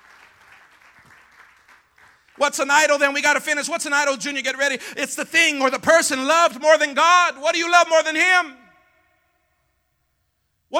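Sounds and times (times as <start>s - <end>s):
audience clapping: 0.0s - 2.5s
speech: 2.4s - 8.6s.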